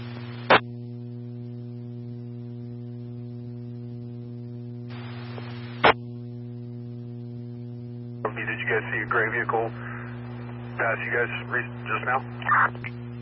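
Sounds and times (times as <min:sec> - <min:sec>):
EMS 2 radio test tones: 0:04.9 - 0:06.0, 0:08.2 - 0:13.1
speech: 0:08.7 - 0:09.8, 0:10.8 - 0:13.0.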